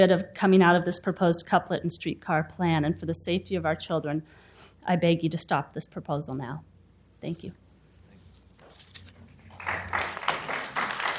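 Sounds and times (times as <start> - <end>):
speech: 0.0 - 7.6
audience clapping: 9.3 - 11.1.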